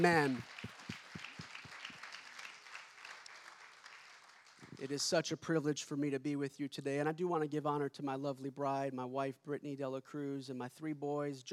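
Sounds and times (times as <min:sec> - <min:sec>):
speech: 0:00.0 - 0:00.6, 0:04.8 - 0:11.5
audience clapping: 0:00.0 - 0:05.2.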